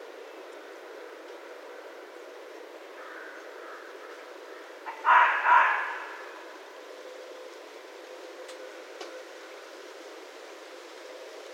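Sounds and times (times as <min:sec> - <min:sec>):
red fox barking: 0:04.5 - 0:06.6.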